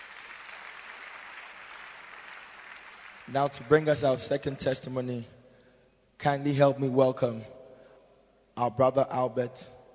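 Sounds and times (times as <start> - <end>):
church congregation clapping in praise: 0.0 - 4.4
speech: 3.3 - 5.4, 6.2 - 7.6, 8.6 - 9.8.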